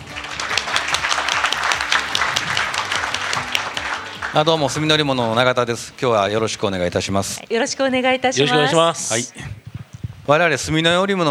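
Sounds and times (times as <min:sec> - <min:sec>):
audience applause welcoming a speaker: 0:00.0 - 0:05.2
speech: 0:04.4 - 0:09.6, 0:10.3 - 0:11.2.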